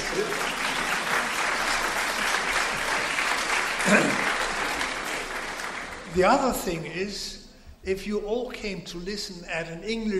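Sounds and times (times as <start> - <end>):
lecture audience applauding the translator: 0.0 - 6.4
speech: 6.2 - 10.1.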